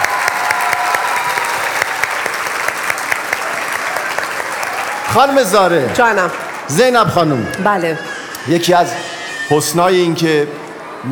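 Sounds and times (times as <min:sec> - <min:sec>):
crowd clapping: 0:00.0 - 0:08.0
speech: 0:05.2 - 0:11.1.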